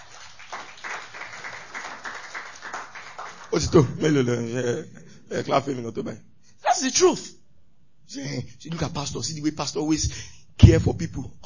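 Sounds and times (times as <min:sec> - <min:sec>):
audience applause: 0:00.0 - 0:03.7
speech: 0:03.5 - 0:07.4, 0:08.1 - 0:11.4.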